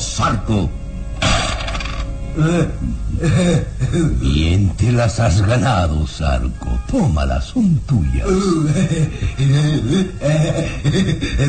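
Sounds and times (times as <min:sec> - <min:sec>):
speech: 0:00.2 - 0:00.8, 0:02.4 - 0:11.4
gold coins clinking: 0:01.5 - 0:02.1
laughter: 0:02.4 - 0:04.2, 0:08.3 - 0:11.4.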